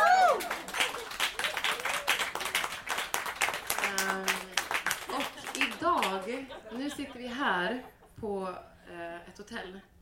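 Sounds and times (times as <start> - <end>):
applause: 0.0 - 6.2
laughter: 5.1 - 8.2
speech: 6.3 - 10.0.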